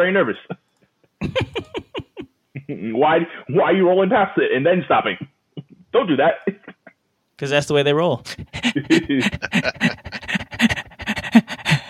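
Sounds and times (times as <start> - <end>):
speech: 0.0 - 0.6, 1.2 - 1.6, 2.7 - 5.3, 5.9 - 6.6, 7.4 - 10.2
laughter: 1.2 - 2.3, 8.4 - 11.7
heavy rapid panting: 8.3 - 11.8.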